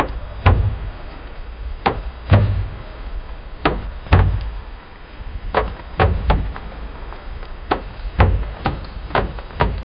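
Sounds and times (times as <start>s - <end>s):
door slamming: 1.9s - 2.8s, 3.6s - 4.5s, 5.6s - 6.6s, 7.7s - 9.8s.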